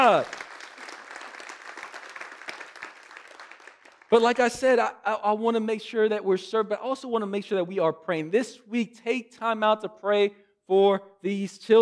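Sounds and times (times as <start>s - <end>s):
speech: 0.0s - 0.4s, 4.1s - 11.7s
church audience clapping: 0.0s - 4.8s.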